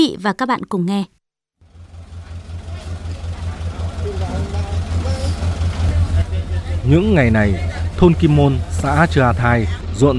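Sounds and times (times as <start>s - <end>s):
speech: 0.0s - 1.2s, 6.8s - 10.1s
road construction machinery widening an inter-village road in Kim Môn village: 1.6s - 10.1s.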